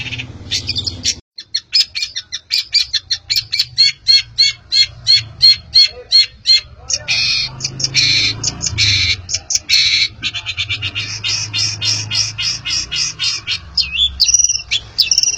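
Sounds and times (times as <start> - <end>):
long-tailed shrike singing: 0.0 - 15.3.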